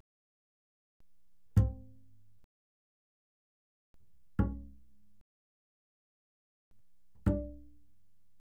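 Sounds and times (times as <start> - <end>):
loud double bass pizzicato on the D string: 1.6 - 2.2, 4.1 - 5.2, 7.0 - 8.0.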